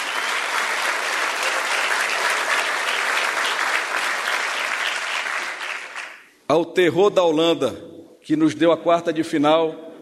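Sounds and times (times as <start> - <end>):
audience applause: 0.0 - 6.3
speech: 6.5 - 9.9.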